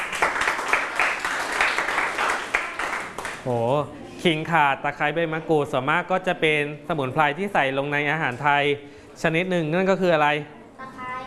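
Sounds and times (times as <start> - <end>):
people clapping: 0.0 - 3.6
speech: 3.4 - 10.6.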